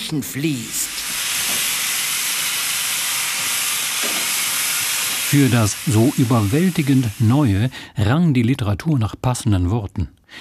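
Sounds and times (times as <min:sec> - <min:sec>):
speech: 0:00.1 - 0:01.0, 0:05.3 - 0:10.3
steam locomotive hissing: 0:00.6 - 0:08.0.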